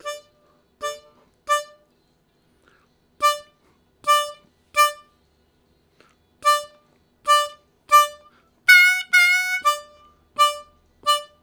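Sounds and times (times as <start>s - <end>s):
harmonica riffs: 0.0s - 1.8s, 3.2s - 5.1s, 6.4s - 11.4s.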